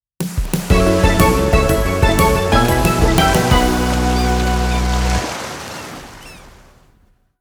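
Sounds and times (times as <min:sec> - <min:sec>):
game over background music: 0:00.7 - 0:05.2.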